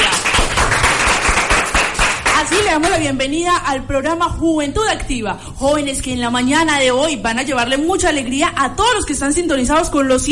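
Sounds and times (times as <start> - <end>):
strong applause: 0.0 - 3.0
speech: 2.8 - 10.3.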